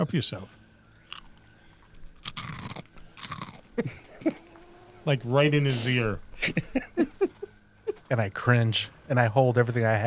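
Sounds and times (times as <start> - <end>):
speech: 0.0 - 0.6, 3.8 - 7.2, 8.1 - 10.0
crunching on potato chips: 1.1 - 3.7
laughter: 3.7 - 4.6, 5.4 - 8.5.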